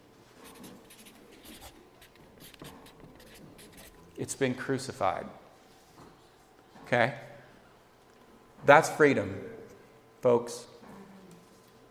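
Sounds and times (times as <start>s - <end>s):
writing a word on a board: 0.4s - 4.0s
speech: 4.2s - 5.4s, 6.9s - 7.3s, 8.7s - 9.5s, 10.2s - 10.7s.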